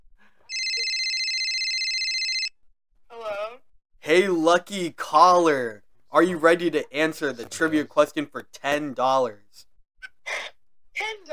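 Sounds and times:
telephone ringing while calling someone: 0.5 - 2.6
speech: 4.1 - 9.7.

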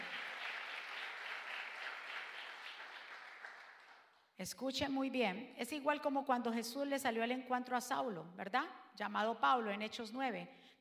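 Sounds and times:
audience applause: 0.0 - 4.1
speech: 4.4 - 10.8.

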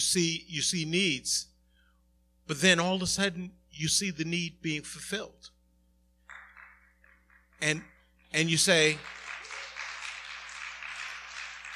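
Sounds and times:
speech: 0.0 - 1.5, 2.5 - 5.6, 7.6 - 9.2
audience applause: 8.8 - 11.7.

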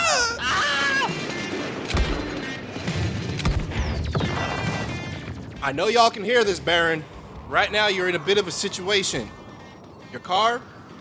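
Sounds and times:
Wilhelm scream sound effect: 0.0 - 1.2
gunshots: 1.1 - 5.8
speech: 5.6 - 9.4, 10.2 - 10.7.

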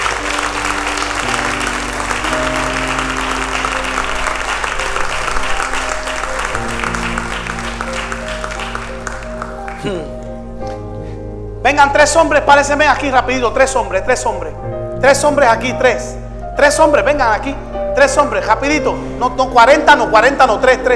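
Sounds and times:
audience applause: 0.0 - 10.1
sustained keyboard chords: 0.0 - 20.9
speech: 11.7 - 20.9.

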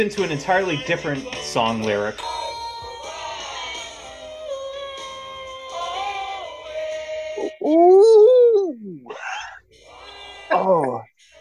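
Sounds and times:
speech: 0.0 - 2.4
husky dog howling and screaming in the backyard: 4.4 - 6.8, 7.4 - 10.9.

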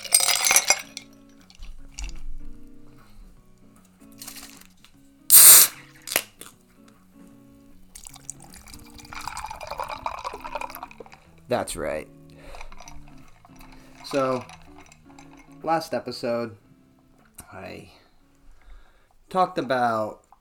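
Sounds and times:
ice dropped into a coffee cup: 0.0 - 1.7, 8.0 - 11.3, 12.5 - 15.6
speech: 11.5 - 12.2, 14.1 - 14.6, 15.6 - 16.6, 17.6 - 18.0, 19.3 - 20.2.

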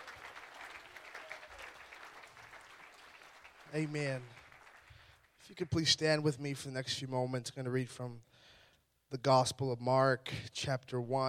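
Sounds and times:
audience clapping: 0.0 - 6.0
speech: 3.7 - 4.4, 5.5 - 8.5, 9.1 - 11.2.

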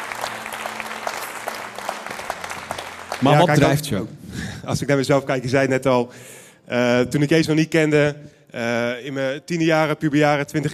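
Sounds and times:
audience applause: 0.0 - 3.9
speech: 3.2 - 10.7.

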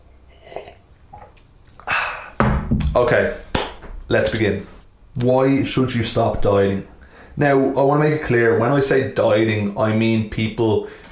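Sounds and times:
person sipping cold black coffee: 0.3 - 2.3
speech: 3.0 - 3.5, 4.1 - 11.1.

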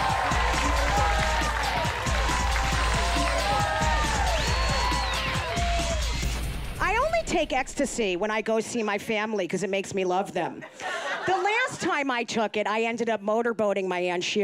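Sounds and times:
crowd clapping: 0.0 - 6.4
speech: 7.3 - 14.4.

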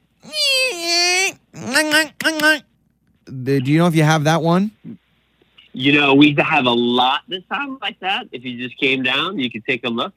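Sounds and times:
voice imitating a firework: 0.2 - 2.5
speech: 3.4 - 5.0, 5.8 - 10.1.

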